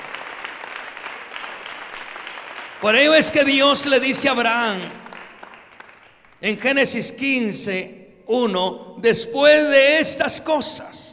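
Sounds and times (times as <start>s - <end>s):
church congregation applauding during a worship service: 0.0s - 7.7s
speech: 2.8s - 5.0s, 6.4s - 11.1s.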